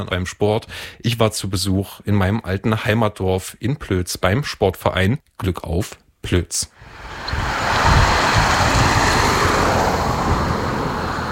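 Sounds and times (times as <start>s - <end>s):
speech: 0.0s - 7.6s
blustery wind outdoors beside a country road: 6.8s - 11.3s
faint road noise: 6.8s - 11.3s.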